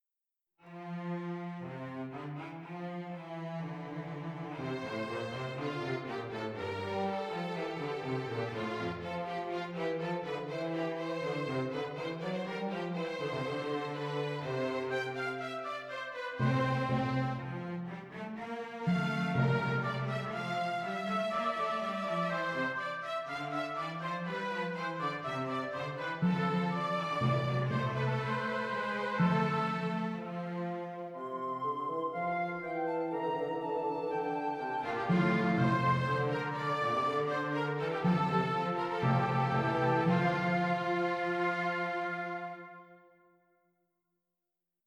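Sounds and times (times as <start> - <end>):
orchestral music: 0.7 - 43.1.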